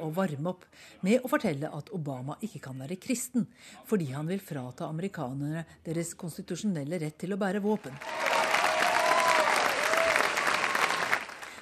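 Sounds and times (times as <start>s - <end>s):
speech: 0.0s - 8.4s
crowd cheering: 8.0s - 11.6s.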